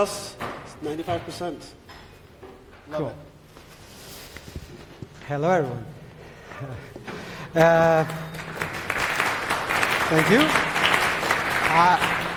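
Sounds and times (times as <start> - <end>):
speech: 0.0 - 1.9, 2.9 - 3.3, 5.3 - 6.0, 6.6 - 8.4, 10.1 - 10.7, 11.7 - 12.1
audience applause: 7.6 - 12.3.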